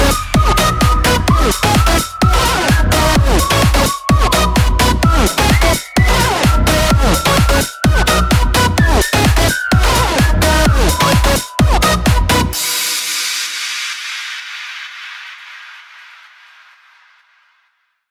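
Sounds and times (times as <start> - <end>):
synthesizer beat: 0.0 - 13.2.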